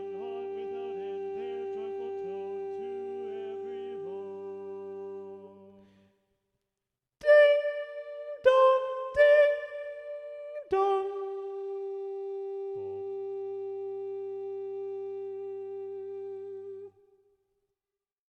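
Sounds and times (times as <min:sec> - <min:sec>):
SATB choir singing with predominant soprano: 0:00.0 - 0:05.8, 0:07.2 - 0:09.8.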